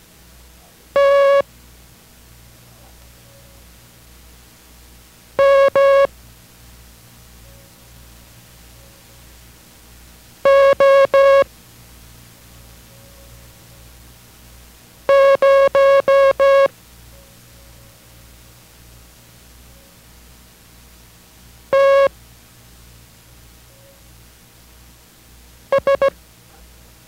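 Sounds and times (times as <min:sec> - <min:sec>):
Morse code characters keyed for copying practice: 0:01.0 - 0:01.4, 0:05.4 - 0:06.1, 0:10.5 - 0:11.5, 0:15.1 - 0:16.7, 0:21.7 - 0:22.1, 0:25.7 - 0:26.2.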